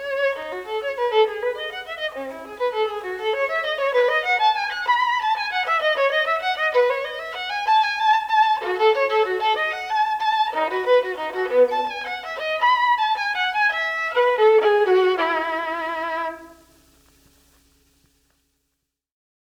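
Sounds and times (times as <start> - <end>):
solo violin piece: 0.0 - 17.0.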